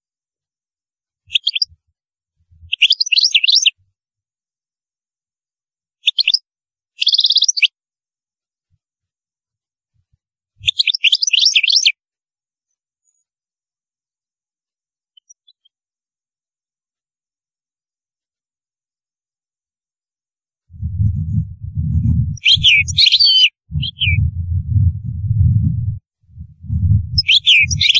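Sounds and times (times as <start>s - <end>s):
European goldfinch song: 1.3s - 1.8s, 2.7s - 3.8s, 6.0s - 6.4s, 7.0s - 7.7s, 10.6s - 12.0s, 15.1s - 15.7s, 22.4s - 24.3s, 26.9s - 27.9s
low pulsing rumble: 20.7s - 23.0s, 23.7s - 27.9s.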